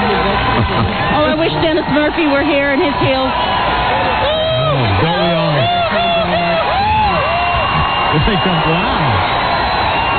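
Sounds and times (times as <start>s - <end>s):
large crowd cheering: 0.0s - 10.1s
speech: 1.4s - 4.0s, 8.2s - 9.1s.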